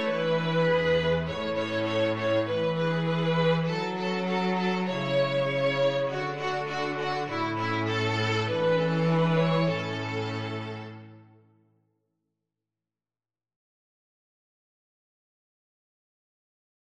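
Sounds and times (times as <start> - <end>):
string quartet: 0.0 - 11.4.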